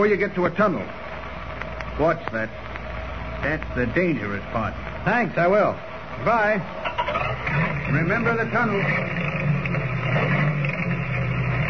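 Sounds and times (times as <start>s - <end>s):
speech: 0.0s - 1.0s, 2.0s - 2.7s, 3.4s - 9.3s
old car engine chugging laboriously: 6.8s - 11.6s.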